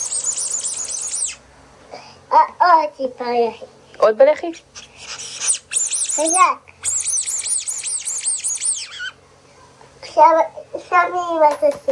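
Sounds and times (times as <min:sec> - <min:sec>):
squeaky toy duck squeaking: 0:00.0 - 0:01.4, 0:05.1 - 0:09.2
speech: 0:02.3 - 0:04.8, 0:06.2 - 0:06.7, 0:10.2 - 0:11.8.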